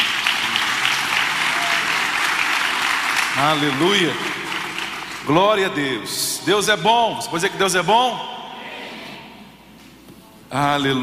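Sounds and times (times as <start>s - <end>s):
audience applause: 0.0s - 5.4s
speech: 3.4s - 4.4s, 5.3s - 8.3s, 10.5s - 11.0s.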